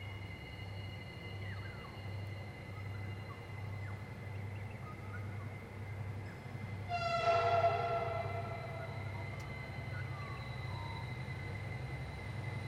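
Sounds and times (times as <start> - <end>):
diesel locomotives with coal train at Vic Tunnel: 0.0 - 12.6.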